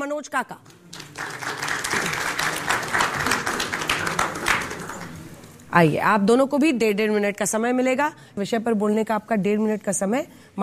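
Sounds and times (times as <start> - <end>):
speech: 0.0 - 1.4, 5.7 - 10.6
audience applause welcoming participants: 0.7 - 5.3.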